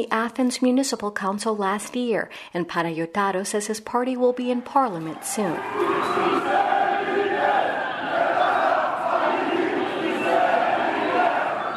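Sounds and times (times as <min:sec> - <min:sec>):
speech: 0:00.0 - 0:06.6
Chrysi Avgi supporters shouting slogans: 0:05.2 - 0:11.7.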